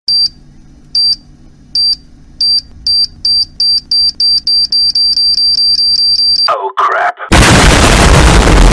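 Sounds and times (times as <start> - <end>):
bomb defuse sound effect: 7.3 - 8.7.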